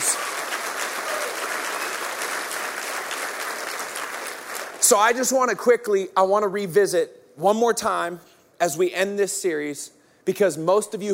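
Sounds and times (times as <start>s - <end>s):
audience clapping: 0.0s - 5.3s
speech: 4.9s - 11.1s.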